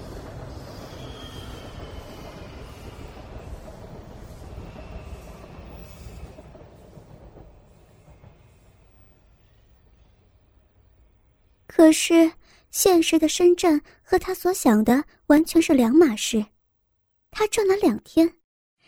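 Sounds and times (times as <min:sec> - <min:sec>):
train wheel squeal: 0:00.0 - 0:06.5
southbound passenger train rumbling along the rails: 0:00.0 - 0:15.8
speech: 0:11.8 - 0:16.5, 0:17.4 - 0:18.4.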